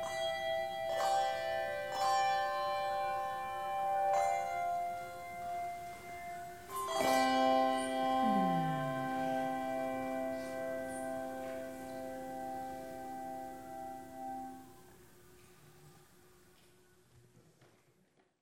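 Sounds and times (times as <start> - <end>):
bell choir: 0.0 - 14.7.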